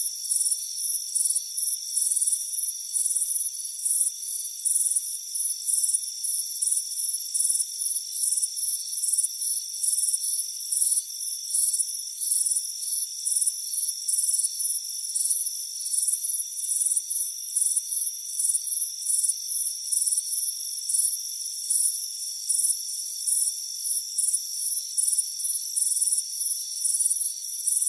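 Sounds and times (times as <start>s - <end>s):
crickets chirping: 0.0s - 27.8s.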